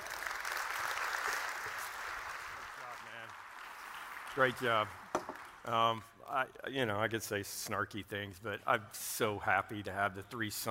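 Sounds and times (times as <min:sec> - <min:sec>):
audience clapping to welcome a speaker back: 0:00.0 - 0:06.0
speech: 0:04.4 - 0:05.0, 0:05.6 - 0:10.7.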